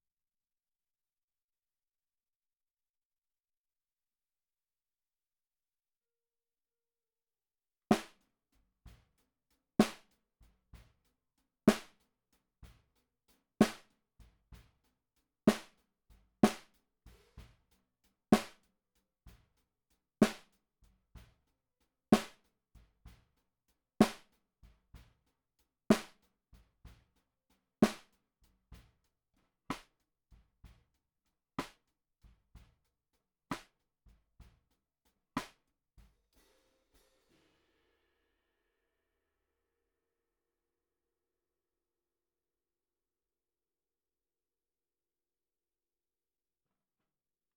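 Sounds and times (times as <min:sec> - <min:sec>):
snare drum recorded from the bottom: 0:07.9 - 0:08.2, 0:09.8 - 0:10.2, 0:11.7 - 0:12.0, 0:13.6 - 0:14.7, 0:15.5 - 0:15.8, 0:16.4 - 0:17.8, 0:18.4 - 0:18.7, 0:20.2 - 0:20.6, 0:22.1 - 0:22.5, 0:24.0 - 0:24.4, 0:25.9 - 0:26.3, 0:27.8 - 0:28.2, 0:29.7 - 0:29.9, 0:31.6 - 0:31.8, 0:33.5 - 0:33.8, 0:35.4 - 0:38.1.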